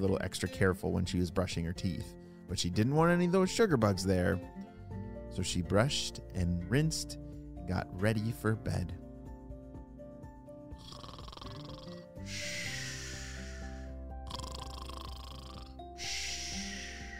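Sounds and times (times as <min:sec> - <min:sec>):
speech: 0:00.0 - 0:04.7, 0:05.3 - 0:09.0
soft music: 0:00.0 - 0:17.1
sleeping parents snoring: 0:10.8 - 0:17.1.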